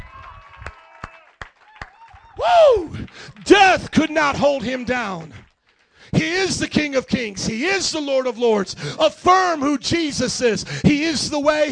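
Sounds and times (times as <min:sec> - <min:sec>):
audience clapping in unison: 0:00.0 - 0:06.8
speech: 0:02.4 - 0:05.4, 0:06.1 - 0:11.7.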